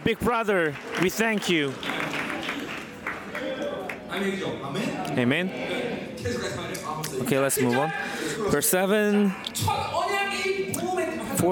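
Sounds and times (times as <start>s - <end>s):
audience applause: 0.0s - 4.5s
speech: 0.1s - 1.9s, 4.2s - 10.7s, 11.4s - 11.5s.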